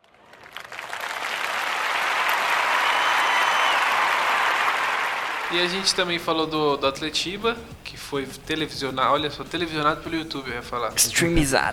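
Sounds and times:
applause: 0.0s - 5.5s
speech: 5.5s - 11.7s.

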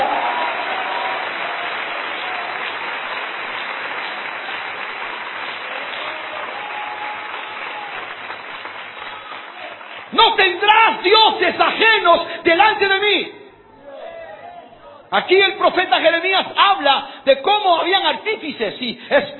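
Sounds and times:
audience applause: 0.0s - 10.8s
speech: 10.5s - 13.4s, 15.1s - 19.3s.

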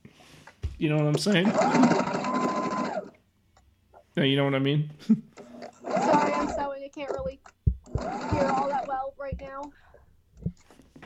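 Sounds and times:
speech: 0.8s - 2.2s, 4.2s - 5.4s, 8.0s - 9.8s
sewing machine whirring: 0.9s - 3.2s, 5.3s - 9.8s.

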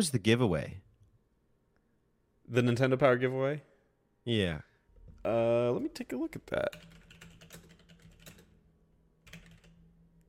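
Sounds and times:
speech: 0.0s - 0.8s, 2.5s - 7.0s
computer keyboard typing a web search: 6.6s - 8.6s, 9.2s - 10.2s.

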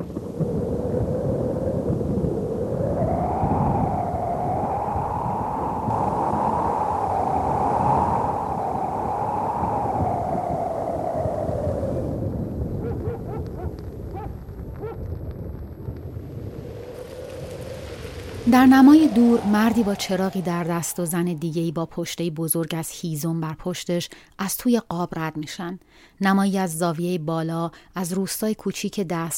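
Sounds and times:
rain patter: 0.0s - 21.7s
roaring whistling wind: 0.0s - 21.8s
speech: 18.5s - 29.3s.

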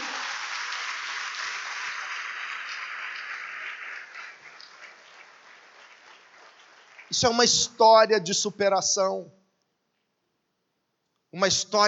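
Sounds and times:
audience applause: 0.0s - 8.1s
speech: 7.1s - 9.4s, 11.4s - 11.8s.

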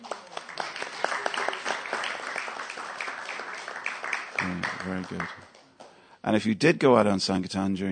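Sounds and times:
audience round of applause: 0.0s - 5.6s
speech: 4.5s - 5.5s, 6.2s - 7.8s.

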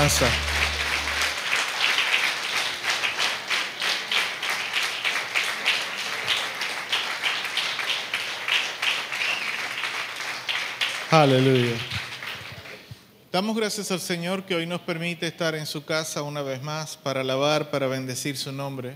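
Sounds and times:
speech: 0.0s - 0.5s, 11.1s - 12.0s, 13.3s - 18.9s
audience applauding: 0.0s - 12.9s.

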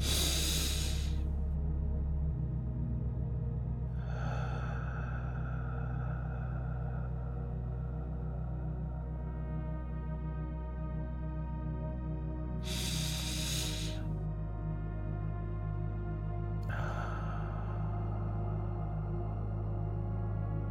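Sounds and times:
deep breath in through the nose and slow exhale: 0.0s - 1.4s, 3.9s - 10.4s, 12.4s - 14.9s, 16.6s - 20.6s
low musical drone: 0.0s - 20.6s.

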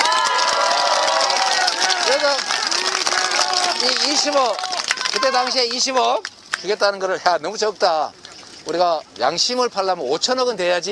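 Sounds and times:
audience applause: 0.0s - 6.7s
speech: 2.3s - 2.6s, 3.8s - 10.8s.

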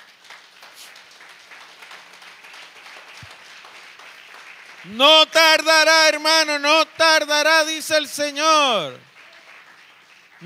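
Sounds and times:
audience applause: 0.0s - 10.4s
speech: 4.8s - 9.1s.

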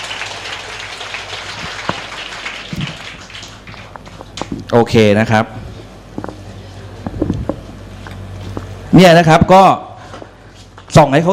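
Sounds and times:
audience applause: 0.0s - 4.4s
speech: 4.7s - 5.6s, 9.0s - 9.9s, 11.0s - 11.3s.

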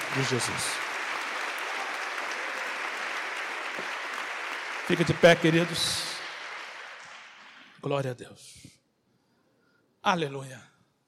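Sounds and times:
audience clapping applause: 0.0s - 7.8s
speech: 0.2s - 0.9s, 4.9s - 6.1s, 7.8s - 8.8s, 10.0s - 10.7s.

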